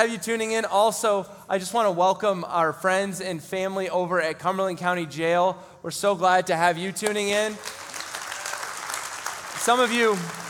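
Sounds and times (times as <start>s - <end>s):
speech: 0.0s - 7.8s, 9.6s - 10.4s
church congregation clapping during a Sunday service: 7.0s - 10.4s.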